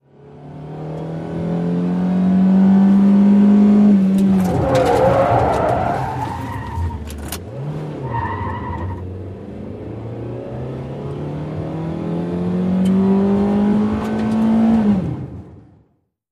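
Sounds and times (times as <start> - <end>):
compact car engine revving: 0.2 - 15.3
compact car tires skidding in a 180 turn: 3.9 - 9.1.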